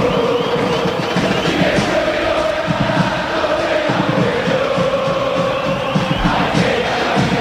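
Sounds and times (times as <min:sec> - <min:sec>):
football fans chanting in a stadium: 0:00.0 - 0:07.3.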